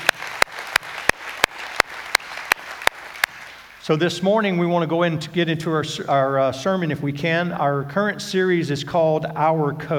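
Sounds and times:
crowd applauding: 0.0s - 3.8s
sharp loud claps in an even rhythm: 0.0s - 3.8s
speech: 3.9s - 9.9s.

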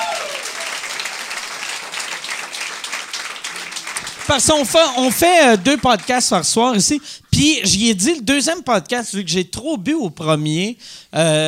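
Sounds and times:
audience applause: 0.0s - 6.8s
speech: 4.3s - 11.4s.

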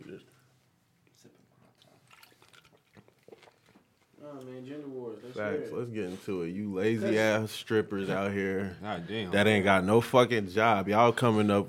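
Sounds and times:
drink poured straight into someone's mouth: 1.7s - 4.0s
speech: 4.3s - 11.6s.

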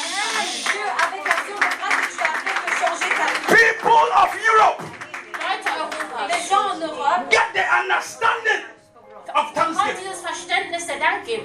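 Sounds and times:
people cheering with excited voices: 0.0s - 5.9s
many hands clapping: 0.5s - 6.5s
speech: 7.2s - 8.6s, 9.8s - 11.4s.

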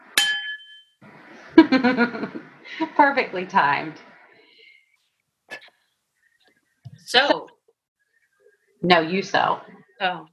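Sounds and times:
cocktail glasses clinking together: 0.0s - 1.0s
laughter: 1.4s - 3.0s
speech: 1.7s - 4.1s, 7.1s - 7.5s, 8.8s - 10.3s.

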